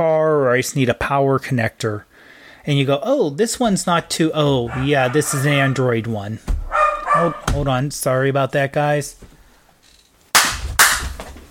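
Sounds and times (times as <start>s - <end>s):
speech: 0.0s - 9.3s
hand clapping: 10.4s - 11.2s.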